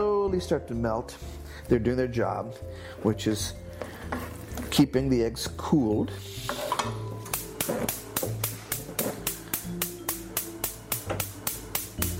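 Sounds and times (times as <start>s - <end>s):
speech: 0.3s - 7.0s
gas range igniter clicking: 6.5s - 12.1s.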